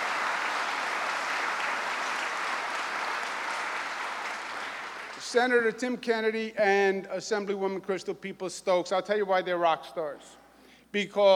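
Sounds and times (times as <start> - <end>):
audience applause: 0.0 - 5.5
speech: 5.3 - 11.3.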